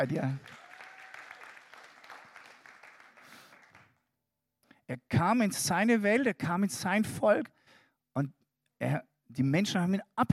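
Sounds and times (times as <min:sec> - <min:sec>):
speech: 0:00.0 - 0:00.6, 0:04.9 - 0:07.6, 0:08.2 - 0:10.3
audience applause: 0:00.0 - 0:03.9.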